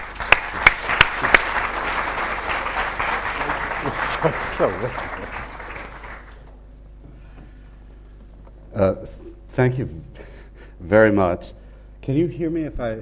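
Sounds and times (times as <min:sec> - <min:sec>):
audience applauding to welcome a lecturer at an evening lecture: 0:00.0 - 0:06.6
speech: 0:04.2 - 0:05.2, 0:08.8 - 0:10.1, 0:10.8 - 0:13.0.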